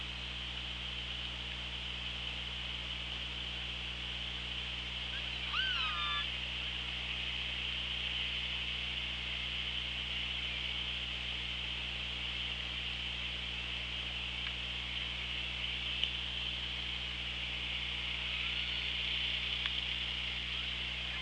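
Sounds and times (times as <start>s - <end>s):
steady underwater hiss and low hum: 0.2s - 21.1s
killer whale call: 5.2s - 6.3s.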